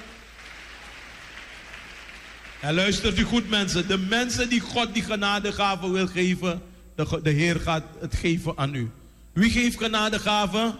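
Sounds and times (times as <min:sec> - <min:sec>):
audience applause: 0:00.0 - 0:02.8
speech: 0:02.6 - 0:10.7.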